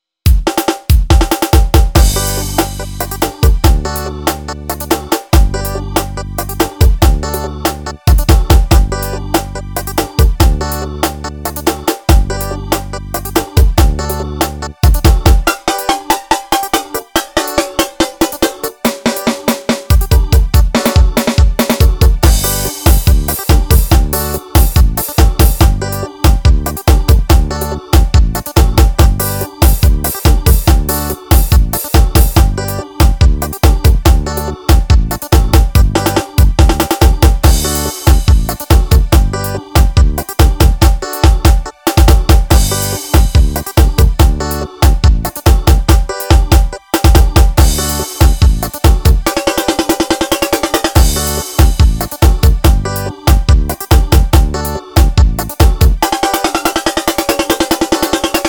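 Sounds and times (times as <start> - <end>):
Yamaha keyboard arrocha rhythm: 0.3 - 58.4.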